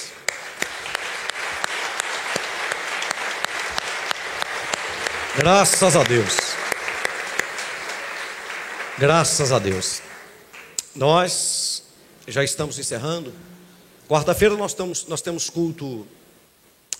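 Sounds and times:
audience clapping: 0.0s - 10.9s
speech: 5.4s - 6.4s, 9.0s - 10.1s, 11.0s - 11.6s, 12.3s - 16.2s.

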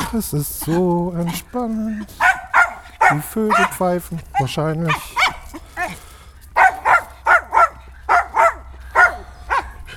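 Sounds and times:
speech: 0.1s - 2.4s, 3.1s - 5.2s
dog barking: 2.2s - 6.0s, 6.6s - 9.8s.

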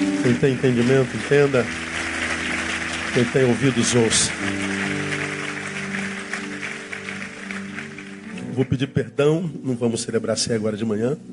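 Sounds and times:
audience applause: 0.0s - 8.8s
speech: 0.2s - 1.9s, 3.1s - 5.0s, 8.6s - 11.3s.

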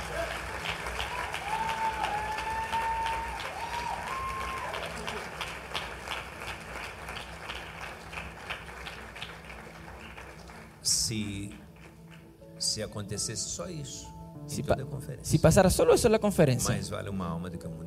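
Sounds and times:
audience applause: 0.0s - 12.3s
speech: 12.8s - 17.8s.

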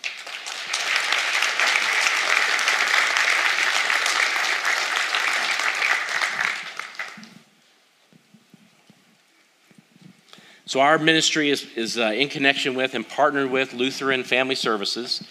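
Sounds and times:
audience applause welcoming a speaker to the stage at a church service: 0.0s - 7.4s
speech: 10.7s - 15.2s.

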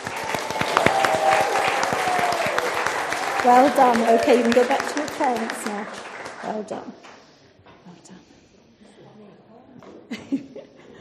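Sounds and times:
audience applause: 0.0s - 7.2s
speech: 3.4s - 7.1s.

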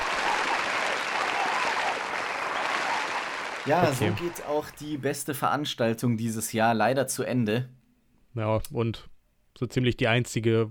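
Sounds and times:
applause played from a sound track: 0.0s - 5.0s
speech: 3.6s - 7.8s, 8.4s - 10.6s.

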